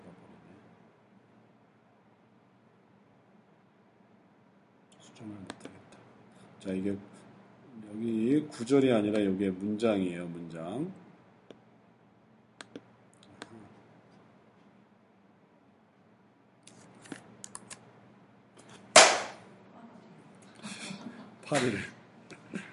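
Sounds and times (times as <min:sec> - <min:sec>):
speech: 0:05.2 - 0:05.8, 0:06.6 - 0:07.2, 0:07.9 - 0:11.0, 0:21.5 - 0:22.0
smack of a fly being swatted: 0:19.0 - 0:19.4.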